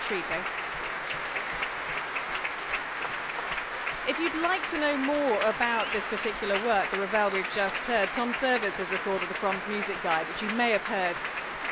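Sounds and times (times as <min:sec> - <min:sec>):
orchestra players applauding after performance: 0:00.0 - 0:11.7
speech: 0:00.1 - 0:00.8, 0:04.1 - 0:11.4.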